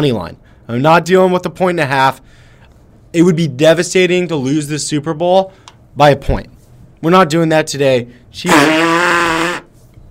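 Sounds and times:
speech: 0.0s - 2.4s, 3.1s - 9.2s
raspberry blown with the lips: 8.5s - 9.7s.

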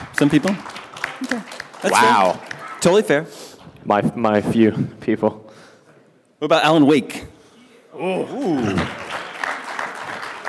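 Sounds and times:
audience applause: 0.0s - 2.8s, 8.3s - 10.4s
speech: 0.2s - 5.4s, 6.4s - 7.3s, 7.9s - 9.0s.

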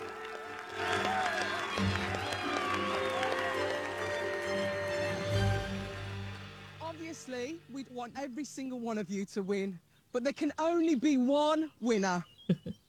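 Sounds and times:
round of applause: 0.0s - 7.0s
speech: 7.8s - 12.6s.

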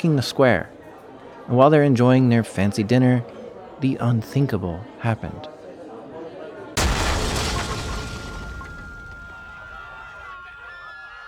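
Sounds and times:
speech: 0.0s - 0.8s, 1.5s - 5.5s
massive explosion in a busy cafe in Marrakesh: 6.8s - 9.8s.

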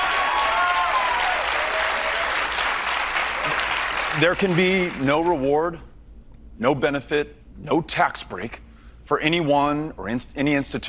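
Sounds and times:
crowd applause: 0.0s - 5.3s
speech: 4.2s - 5.9s, 6.6s - 10.8s.

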